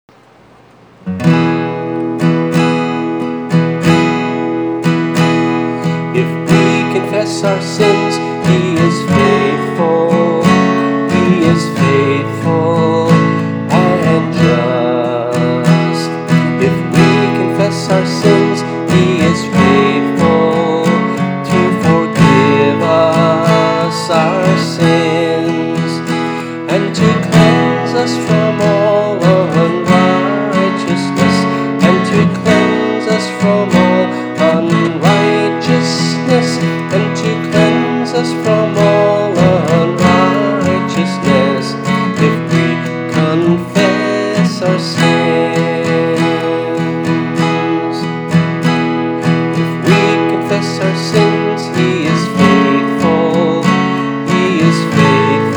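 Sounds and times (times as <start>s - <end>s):
guitar: 0.1s - 55.5s.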